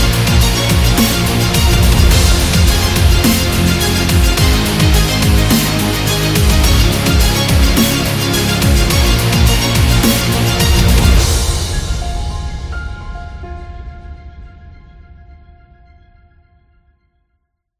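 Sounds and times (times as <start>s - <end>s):
epic dubstep trailer music: 0.0s - 12.6s.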